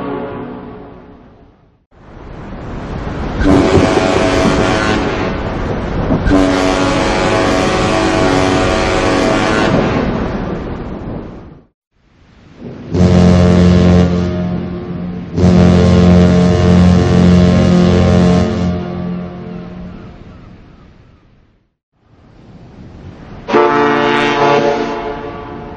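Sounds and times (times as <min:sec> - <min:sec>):
large warship cruiser whistle: 0:03.4 - 0:05.4, 0:06.2 - 0:10.0, 0:12.9 - 0:20.1, 0:23.5 - 0:25.7.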